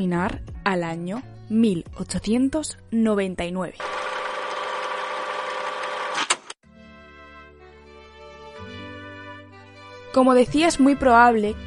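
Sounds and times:
speech: 0:00.0 - 0:04.2, 0:10.1 - 0:11.6
time machine starting up sound effect: 0:03.8 - 0:06.5.

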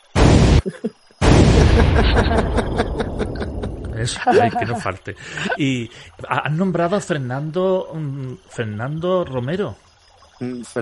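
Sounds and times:
bomb explosions with rumbling and crackling: 0:00.1 - 0:00.6, 0:01.2 - 0:04.8
speech: 0:00.6 - 0:03.1, 0:04.0 - 0:10.8
laughter: 0:01.5 - 0:05.9.

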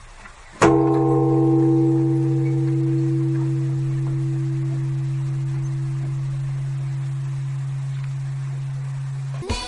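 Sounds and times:
temple bell being rung: 0:00.7 - 0:09.4.

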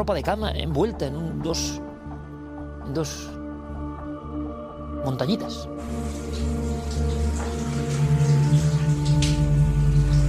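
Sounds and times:
speech: 0:00.0 - 0:01.9, 0:02.8 - 0:03.4, 0:05.0 - 0:07.1
shower water running: 0:05.8 - 0:10.2.

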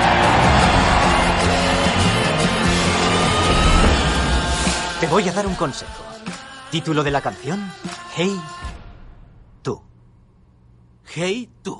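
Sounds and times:
audience applause: 0:00.0 - 0:04.9
speech: 0:05.0 - 0:06.1, 0:06.7 - 0:08.6, 0:09.6 - 0:09.9, 0:11.1 - 0:11.7.

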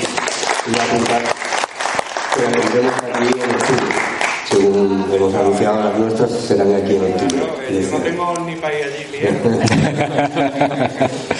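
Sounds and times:
audience applause: 0:00.0 - 0:04.8
speech: 0:00.7 - 0:01.6, 0:02.4 - 0:04.0, 0:04.7 - 0:11.3
laughter: 0:09.2 - 0:11.3.

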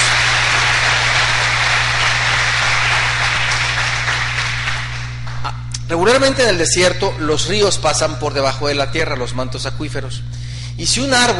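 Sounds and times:
audience applause: 0:00.0 - 0:05.5
speech: 0:05.9 - 0:11.3.

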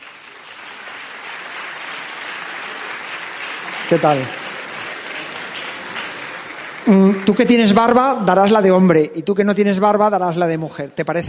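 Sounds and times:
audience applause: 0:00.0 - 0:08.4
speech: 0:03.9 - 0:04.4, 0:06.8 - 0:11.2.

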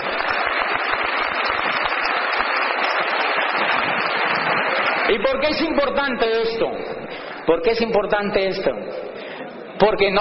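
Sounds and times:
applause: 0:00.0 - 0:05.9
speech: 0:05.1 - 0:09.2, 0:09.8 - 0:10.1.

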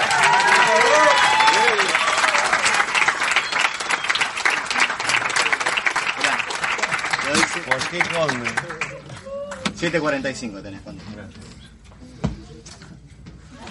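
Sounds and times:
cheers: 0:00.0 - 0:05.6, 0:08.8 - 0:09.8
large audience applause: 0:00.0 - 0:09.7
speech: 0:07.9 - 0:08.7, 0:09.8 - 0:11.4.

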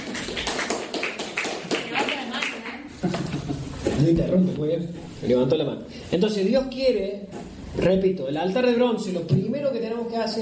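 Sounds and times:
audience applause: 0:00.0 - 0:02.7
speech: 0:03.0 - 0:03.4, 0:04.0 - 0:10.3
laughter: 0:03.0 - 0:03.8.

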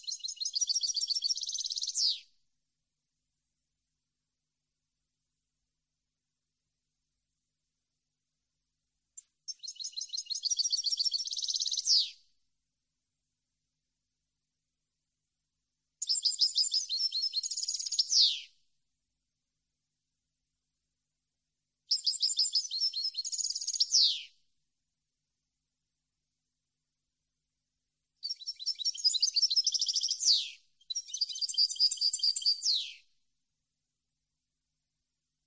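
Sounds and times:
European goldfinch twittering song: 0:00.0 - 0:02.2, 0:09.5 - 0:12.1, 0:16.0 - 0:18.5, 0:21.9 - 0:24.3, 0:28.2 - 0:33.0.

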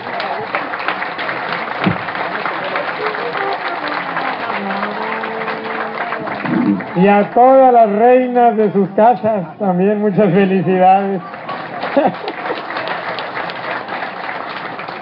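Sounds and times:
audience applause: 0:00.0 - 0:07.7, 0:11.2 - 0:15.0
laughter: 0:02.4 - 0:07.1, 0:11.5 - 0:13.2
speech: 0:07.0 - 0:11.3, 0:12.0 - 0:12.3.

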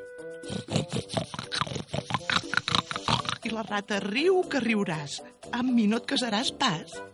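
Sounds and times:
person imitating piglet grunting: 0:00.4 - 0:03.5
speech: 0:03.6 - 0:07.1.

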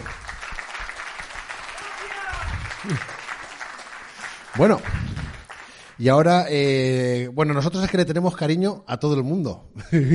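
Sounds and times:
audience applause: 0:00.0 - 0:06.3
person cheering: 0:01.7 - 0:03.2
speech: 0:02.8 - 0:03.1, 0:04.6 - 0:05.1, 0:06.0 - 0:10.1.

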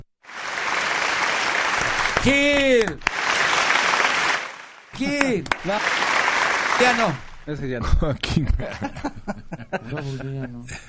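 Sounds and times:
audience applause: 0:00.2 - 0:07.6
speech: 0:02.2 - 0:03.1, 0:05.0 - 0:06.2, 0:06.8 - 0:10.8
laughter: 0:06.8 - 0:10.8.

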